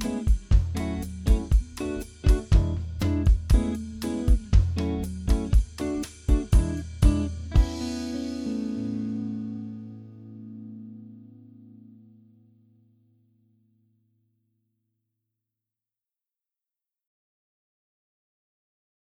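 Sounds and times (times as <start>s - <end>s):
music without bass: 0.0s - 12.0s.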